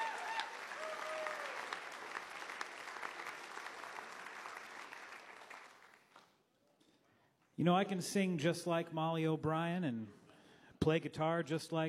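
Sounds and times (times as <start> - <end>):
audience applause: 0.0 - 6.1
speech: 7.6 - 10.2, 10.8 - 11.8.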